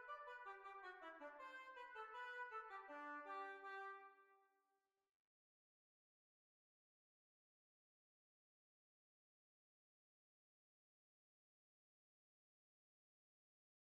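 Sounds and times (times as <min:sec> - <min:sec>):
hornpipe tune: 0:00.0 - 0:04.2.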